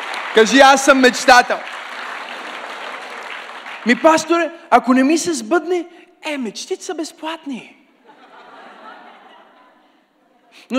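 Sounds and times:
audience applause: 0:00.0 - 0:04.2
speech: 0:00.4 - 0:01.8, 0:03.8 - 0:07.8
laughter: 0:08.0 - 0:10.5.

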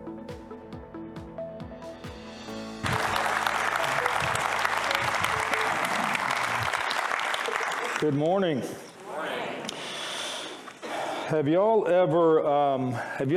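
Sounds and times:
church congregation applauding to welcome a guest speaker: 0:02.6 - 0:08.2
speech: 0:08.0 - 0:08.9, 0:11.3 - 0:13.3.

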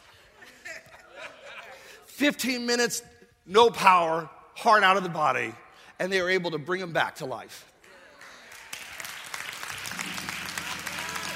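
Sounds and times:
laughter: 0:00.0 - 0:02.2
speech: 0:02.2 - 0:07.7
audience clapping: 0:07.8 - 0:11.3.

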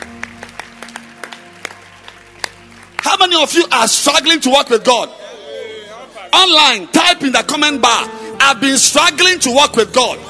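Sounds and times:
church congregation clapping hands: 0:00.0 - 0:05.0
speech: 0:03.2 - 0:05.2, 0:06.3 - 0:10.2.

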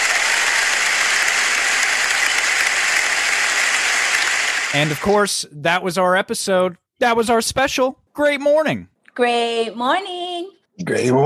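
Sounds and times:
audience applause: 0:00.0 - 0:05.3
speech: 0:04.7 - 0:10.2, 0:10.8 - 0:11.2.

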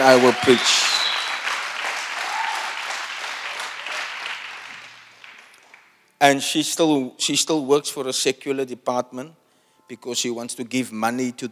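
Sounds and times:
speech: 0:00.0 - 0:00.9, 0:06.2 - 0:11.5
audience clapping: 0:00.0 - 0:06.0.

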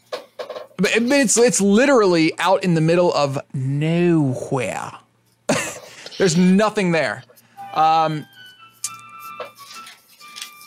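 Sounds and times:
speech: 0:00.8 - 0:05.0, 0:06.2 - 0:08.3
timer alarm going off: 0:07.5 - 0:09.5.

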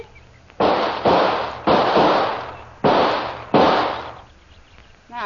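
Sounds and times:
gunshots: 0:00.6 - 0:04.3.

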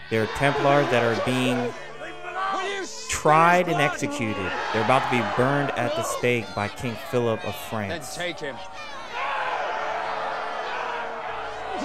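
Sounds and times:
frenzied crowd shouting at an execution: 0:00.0 - 0:11.8
speech: 0:00.1 - 0:01.9, 0:02.6 - 0:08.9.

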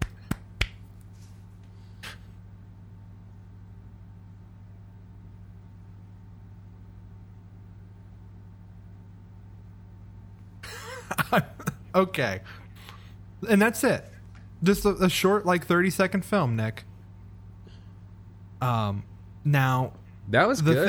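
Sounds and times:
audience clapping: 0:00.0 - 0:00.8
laughter: 0:10.6 - 0:12.7, 0:20.5 - 0:20.8
speech: 0:11.3 - 0:12.6, 0:13.4 - 0:16.9, 0:18.6 - 0:20.8.

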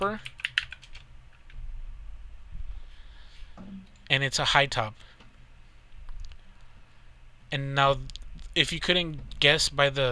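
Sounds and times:
speech: 0:00.0 - 0:00.4, 0:04.1 - 0:05.1, 0:07.5 - 0:10.1
typing a search into Google on a computer keyboard: 0:00.2 - 0:01.5.

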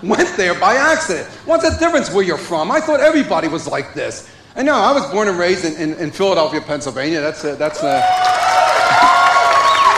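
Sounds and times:
speech: 0:00.0 - 0:09.1
audience cheering and whooping: 0:07.7 - 0:09.9.

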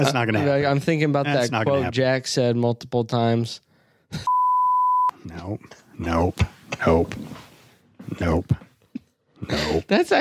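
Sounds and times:
speech: 0:00.0 - 0:04.4, 0:05.2 - 0:07.4, 0:08.0 - 0:08.7, 0:09.4 - 0:10.1
short high-pitched censorship beep: 0:04.3 - 0:05.1.

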